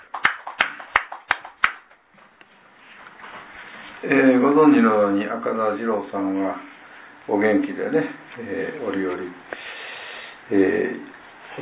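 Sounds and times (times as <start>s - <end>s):
hand claps for a 47th birthday: 0.0s - 2.0s
faint low noise: 0.0s - 11.6s
speech: 4.0s - 6.7s, 7.3s - 9.6s, 10.5s - 11.6s.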